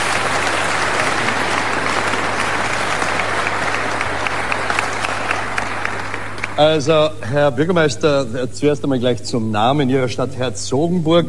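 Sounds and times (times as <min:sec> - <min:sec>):
crowd clapping: 0:00.0 - 0:07.1
speech: 0:06.6 - 0:11.2.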